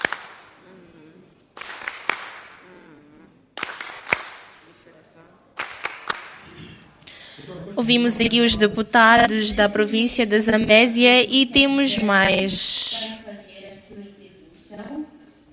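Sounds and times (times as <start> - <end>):
scattered applause in an assembly: 0.0 - 0.6, 1.5 - 2.6, 3.6 - 4.6, 5.6 - 6.6
voices murmuring: 7.1 - 13.2
speech: 7.5 - 13.2.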